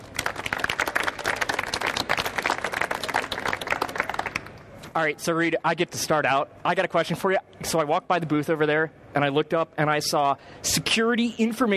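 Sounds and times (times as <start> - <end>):
audience applause at the live BrainShare conference event: 0.0 - 4.5
speech: 5.0 - 11.7.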